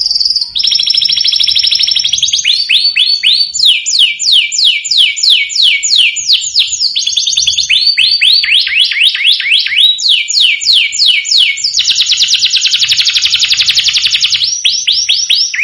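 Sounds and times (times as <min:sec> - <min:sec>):
domestic canary song: 0:00.0 - 0:15.6.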